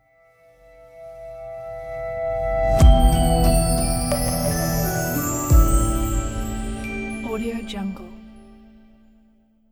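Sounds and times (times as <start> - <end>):
gentle soft logo jingle: 2.8 - 8.9.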